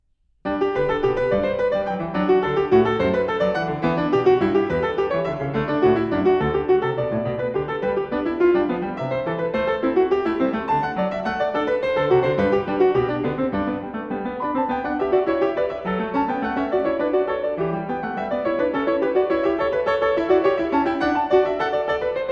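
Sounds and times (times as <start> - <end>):
piano: 0.0 - 22.3.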